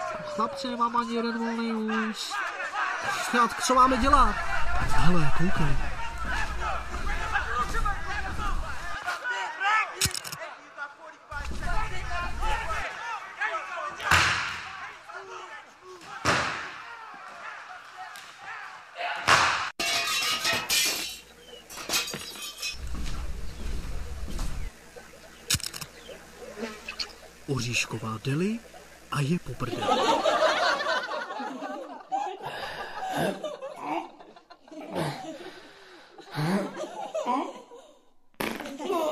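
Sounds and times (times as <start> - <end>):
brawl: 0.0 - 9.2, 11.3 - 37.7, 38.3 - 39.0
speech: 0.4 - 6.4, 27.8 - 30.4
laughter: 1.8 - 9.3, 29.5 - 39.0
slams in a brawl: 14.0 - 14.7, 16.0 - 16.9
breaking glass: 19.8 - 22.8.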